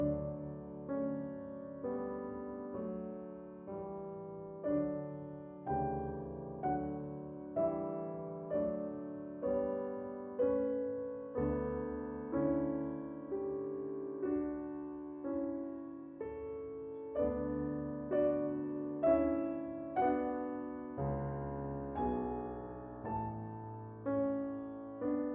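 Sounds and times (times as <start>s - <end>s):
piano concerto adagio: 0.0s - 25.3s.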